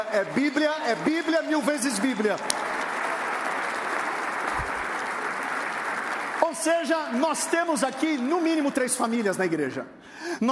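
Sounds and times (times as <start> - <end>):
audience applause: 0.0 - 8.4
speech: 0.1 - 2.7, 6.4 - 10.5.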